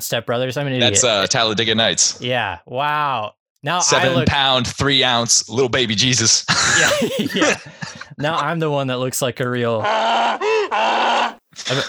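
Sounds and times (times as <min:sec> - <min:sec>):
speech: 0:00.0 - 0:11.8
donkey braying sound effect: 0:03.9 - 0:04.3, 0:09.8 - 0:11.8
laughter: 0:03.9 - 0:04.4, 0:06.5 - 0:08.8.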